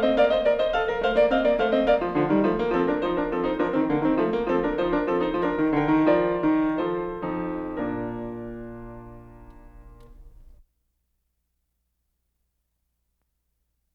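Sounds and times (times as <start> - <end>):
keyboard fugue in B-flat major: 0.0 - 10.6.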